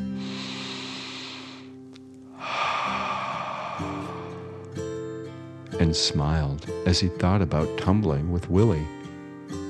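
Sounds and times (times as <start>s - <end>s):
deep breath in and out: 0.0s - 5.4s
soft sustained music: 0.0s - 9.6s
speech: 5.8s - 9.0s.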